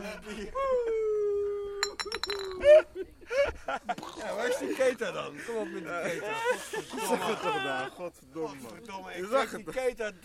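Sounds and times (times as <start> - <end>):
speech: 0.2 - 0.9, 3.8 - 10.2
empty glass bottles clinking: 1.8 - 2.6
laughter: 2.5 - 8.1.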